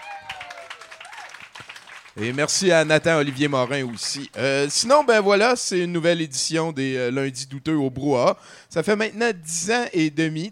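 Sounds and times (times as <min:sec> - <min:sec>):
audience applause: 0:00.0 - 0:04.5
speech: 0:02.2 - 0:10.4.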